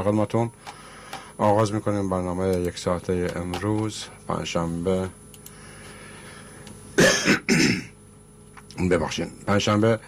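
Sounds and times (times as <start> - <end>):
speech: 0.0 - 0.8, 1.4 - 5.2, 8.8 - 10.0
man with a cold coughing: 7.0 - 8.0.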